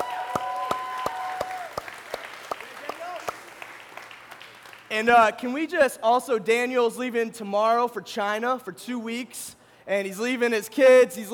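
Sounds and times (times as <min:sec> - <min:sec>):
audience applause: 0:00.0 - 0:05.0
speech: 0:04.9 - 0:11.3.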